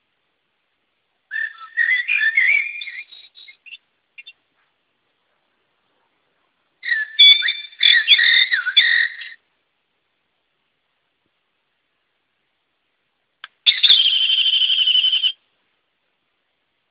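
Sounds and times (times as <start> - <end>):
English bird: 1.3 - 4.4, 6.8 - 9.4, 13.5 - 15.4.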